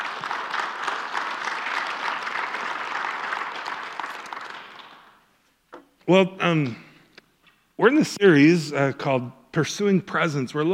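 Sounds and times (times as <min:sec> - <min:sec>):
church congregation applauding: 0:00.0 - 0:05.3
speech: 0:06.1 - 0:06.8, 0:07.8 - 0:10.7.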